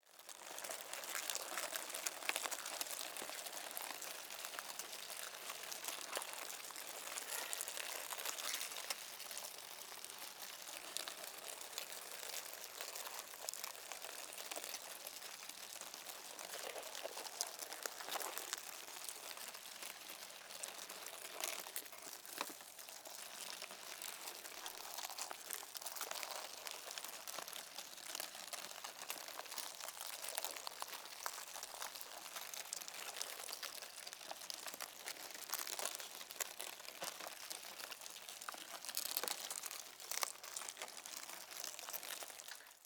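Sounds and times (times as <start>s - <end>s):
mealworm larvae moving: 0.2s - 42.8s.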